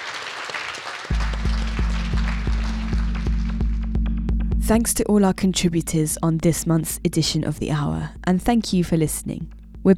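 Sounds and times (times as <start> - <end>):
audience round of applause: 0.0 - 3.8
speech: 4.7 - 9.9.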